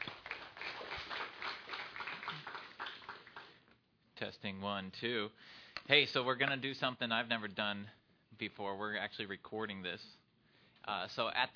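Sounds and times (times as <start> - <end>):
audience applause: 0.0 - 3.6
speech: 4.3 - 10.2, 10.8 - 11.5.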